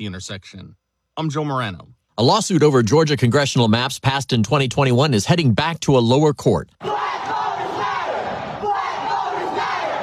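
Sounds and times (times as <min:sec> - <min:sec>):
speech: 0:00.0 - 0:07.2
protesters chanting: 0:06.8 - 0:10.0.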